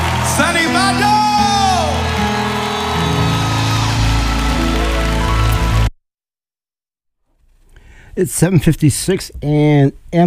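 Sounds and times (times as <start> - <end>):
audience clapping hands: 0.0 - 5.9
speech: 8.2 - 10.2.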